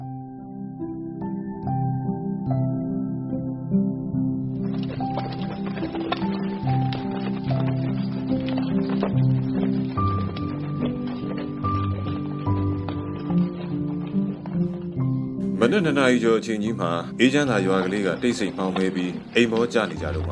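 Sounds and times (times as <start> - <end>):
sustained tonal background: 0.0 - 20.2
horse pulling a cart clip-clopping: 4.6 - 20.2
speech: 15.7 - 20.2.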